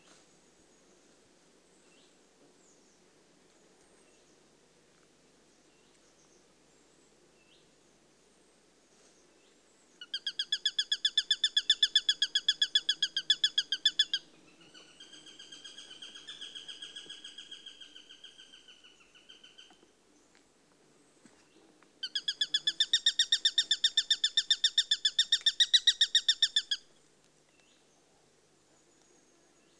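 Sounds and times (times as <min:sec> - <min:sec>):
Eurasian sparrowhawk chattering alarm calls: 0:10.0 - 0:19.7, 0:22.0 - 0:26.8.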